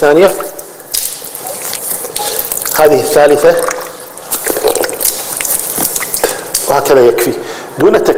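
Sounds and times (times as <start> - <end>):
speech: 0.0 - 0.5, 2.8 - 3.8, 6.7 - 8.1
hands splashing water while washing the face during ritual ablution: 0.9 - 6.8.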